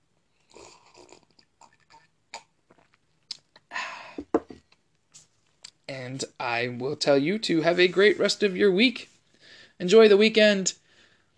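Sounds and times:
person sipping wine: 0:00.4 - 0:03.5
speech: 0:05.9 - 0:09.1, 0:09.8 - 0:10.8.

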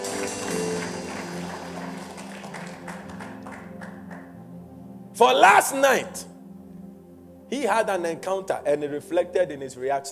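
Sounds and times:
audience clapping: 0:00.0 - 0:04.4
speech: 0:05.2 - 0:06.3, 0:07.5 - 0:10.0.

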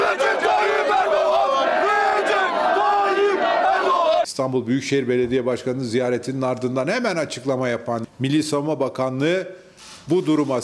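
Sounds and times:
large crowd chanting slogans: 0:00.0 - 0:04.3
speech: 0:04.4 - 0:10.6.

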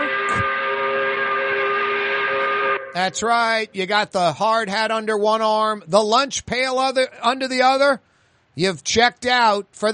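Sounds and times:
factory five o'clock whistle blast: 0:00.0 - 0:03.7
speech: 0:03.0 - 0:09.9.

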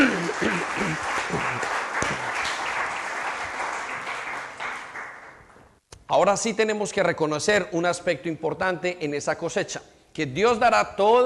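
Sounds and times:
audience applause: 0:00.0 - 0:05.6
speech: 0:06.2 - 0:11.2.

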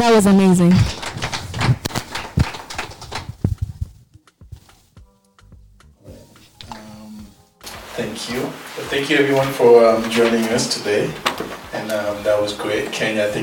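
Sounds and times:
speech: 0:00.0 - 0:01.0, 0:08.3 - 0:13.4
round of applause: 0:00.7 - 0:03.3.

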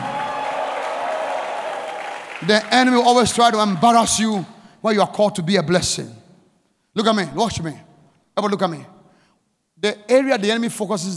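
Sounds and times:
audience clapping hands: 0:00.0 - 0:03.0
speech: 0:02.4 - 0:06.2, 0:07.0 - 0:08.9, 0:09.8 - 0:11.1.

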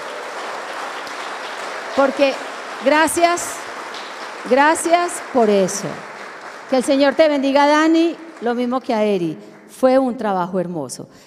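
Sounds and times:
audience applause: 0:00.0 - 0:09.7
speech: 0:02.0 - 0:03.6, 0:04.4 - 0:06.1, 0:06.7 - 0:11.2.

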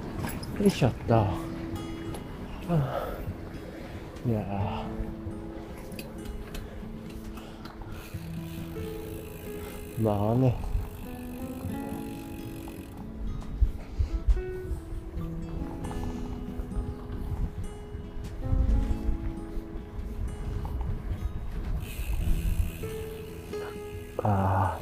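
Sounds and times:
wind: 0:00.0 - 0:24.8
speech: 0:00.6 - 0:01.5, 0:02.7 - 0:03.1, 0:04.2 - 0:05.3, 0:10.0 - 0:10.7, 0:24.3 - 0:24.8
mountain bike freewheel and gears ticking: 0:07.9 - 0:13.0, 0:21.7 - 0:24.8.

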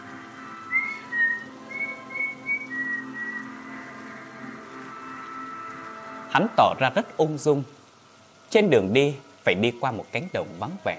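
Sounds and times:
man whistling a tune: 0:00.7 - 0:03.6
speech: 0:06.3 - 0:07.8, 0:08.5 - 0:10.9.

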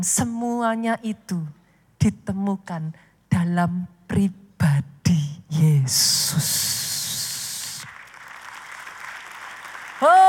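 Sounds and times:
speech: 0:00.0 - 0:06.9, 0:10.0 - 0:10.2
audience applause: 0:07.9 - 0:10.2.

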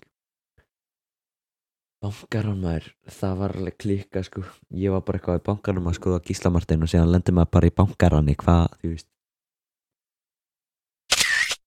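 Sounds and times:
speech: 0:02.0 - 0:09.1
camera shutter click for a selfie: 0:11.1 - 0:11.6.

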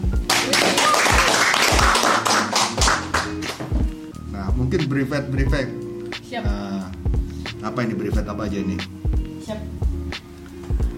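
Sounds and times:
crowd clapping: 0:00.2 - 0:03.8
speech: 0:04.6 - 0:07.0, 0:07.6 - 0:09.7.

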